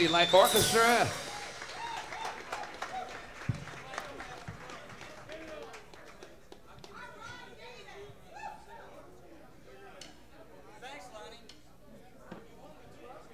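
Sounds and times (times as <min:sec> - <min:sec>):
speech: 0:00.0 - 0:01.2
audience applause welcoming an orchestra performer onstage: 0:00.0 - 0:07.0.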